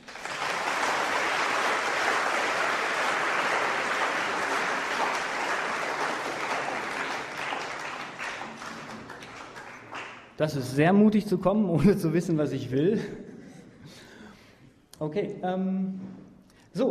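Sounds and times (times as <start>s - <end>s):
audience applause: 0.0s - 10.4s
speech: 10.4s - 13.2s, 15.0s - 16.2s.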